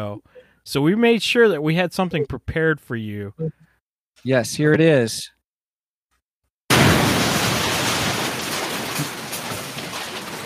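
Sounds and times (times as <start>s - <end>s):
speech: 0.0s - 3.6s, 4.2s - 5.4s
nuclear explosion sound effect: 6.7s - 9.5s.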